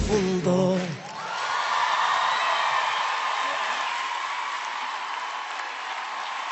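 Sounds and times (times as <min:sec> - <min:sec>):
audience applause: 0:00.2 - 0:06.5
faint whoops: 0:01.1 - 0:06.3.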